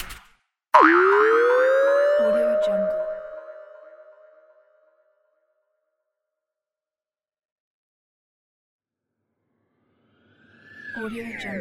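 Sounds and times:
cartoon sound effects: 0.7s - 4.1s.

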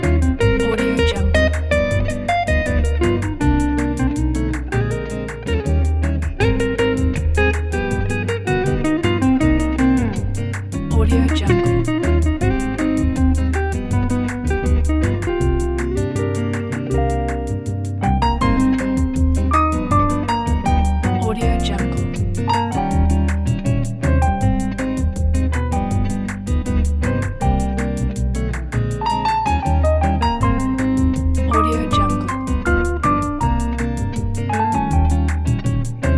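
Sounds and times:
bossa pop music: 0.0s - 36.1s.

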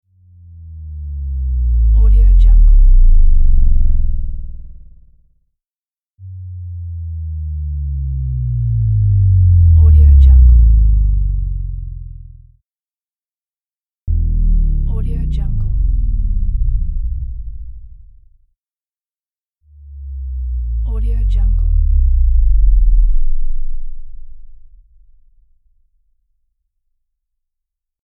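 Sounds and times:
bass drop: 0.3s - 5.2s, 6.2s - 12.5s, 14.1s - 18.4s, 19.8s - 25.8s.

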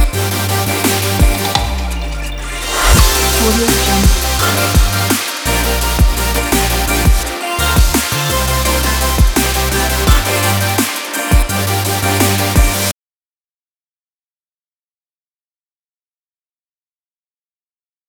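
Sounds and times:
optimistic future bass music: 0.0s - 12.9s.

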